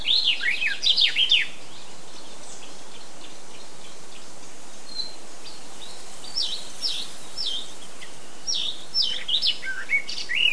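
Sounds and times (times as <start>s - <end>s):
Eurasian blackcap song: 0.0s - 4.2s, 4.9s - 10.5s.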